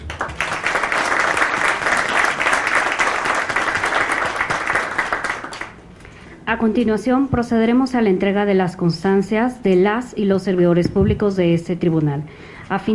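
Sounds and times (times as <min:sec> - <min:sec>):
audience applause: 0:00.0 - 0:05.8
speech: 0:06.5 - 0:12.9.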